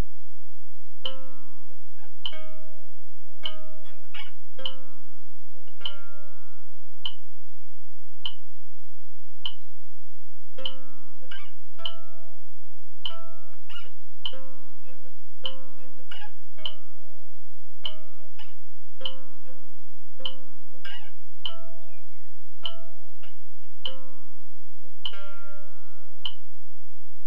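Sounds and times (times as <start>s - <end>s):
mandolin playing third position shifts with ring finger: 1.0s - 7.4s, 10.6s - 12.5s, 13.0s - 17.1s, 17.8s - 26.6s.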